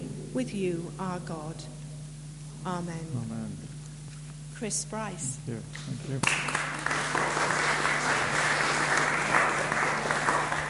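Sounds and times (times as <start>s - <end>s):
speech: 0.4s - 1.8s, 2.6s - 3.7s, 4.6s - 7.4s
audience applause: 6.2s - 10.6s.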